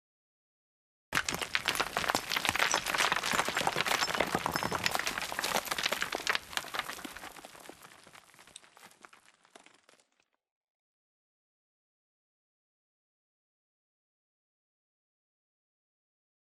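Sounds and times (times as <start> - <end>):
debris: 1.2 - 10.3.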